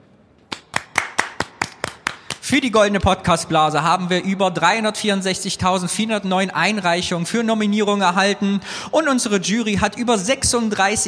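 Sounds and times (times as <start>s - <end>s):
hand claps: 0.4s - 2.5s
speech: 2.5s - 11.0s.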